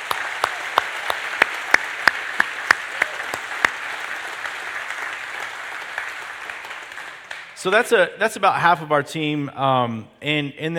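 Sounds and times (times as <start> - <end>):
applause: 0.0 - 7.6
speech: 7.6 - 10.7.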